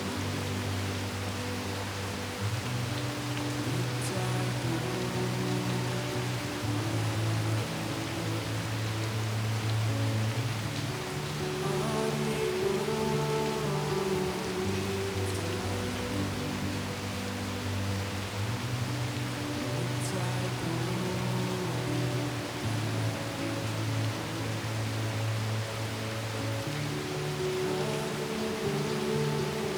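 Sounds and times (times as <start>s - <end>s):
gentle sleep melody: 0.0s - 29.7s
rain: 0.0s - 29.7s.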